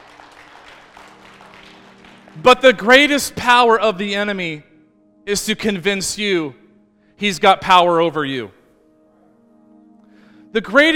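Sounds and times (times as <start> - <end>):
audience clapping: 0.0 - 3.1
speech: 2.4 - 4.7, 5.3 - 6.6, 7.2 - 8.6, 10.5 - 10.9.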